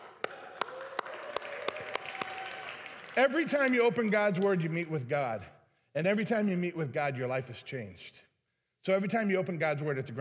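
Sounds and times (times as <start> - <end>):
audience clapping rhythmically: 0.0 - 4.5
speech: 3.2 - 10.1.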